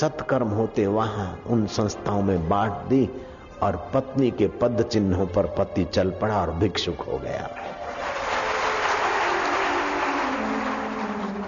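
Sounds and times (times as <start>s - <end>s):
speech: 0.0s - 7.8s
audience clapping: 7.6s - 11.4s.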